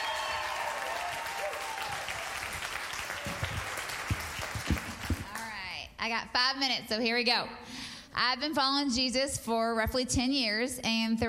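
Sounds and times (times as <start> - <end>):
audience applause welcoming a speaker to the stage: 0.0 - 5.5
speech: 6.0 - 11.2.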